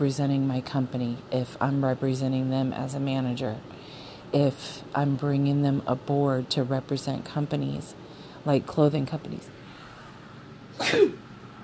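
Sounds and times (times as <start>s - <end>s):
speech: 0.0s - 9.5s, 10.8s - 11.2s
low noise: 0.0s - 11.6s
man sneezing: 10.8s - 11.2s.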